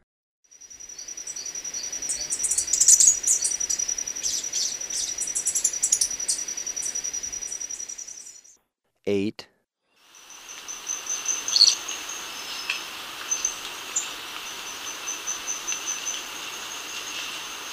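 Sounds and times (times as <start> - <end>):
steady high-pitched insect whine: 0.5 - 8.6, 10.0 - 17.7
Three-striped warbler high thin chips and twitters: 1.4 - 8.6, 10.5 - 16.3.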